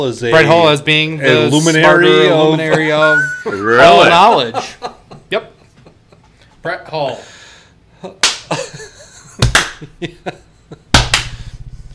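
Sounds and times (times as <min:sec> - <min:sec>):
speech: 0:00.0 - 0:05.5, 0:06.6 - 0:07.4, 0:09.8 - 0:10.5
laughter: 0:02.4 - 0:06.3, 0:08.0 - 0:11.0
two people clapping: 0:08.2 - 0:08.6, 0:09.4 - 0:09.9, 0:10.9 - 0:11.4.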